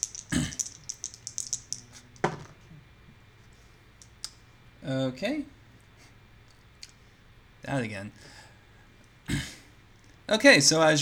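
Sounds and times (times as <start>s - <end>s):
two dice being rolled: 0.0s - 2.6s
speech: 4.9s - 5.6s, 7.7s - 8.4s, 10.3s - 11.0s.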